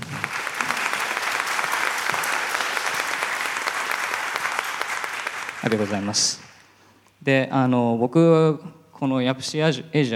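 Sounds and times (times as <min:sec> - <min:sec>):
audience applause: 0:00.0 - 0:06.8
speech: 0:05.6 - 0:06.4, 0:07.2 - 0:10.1.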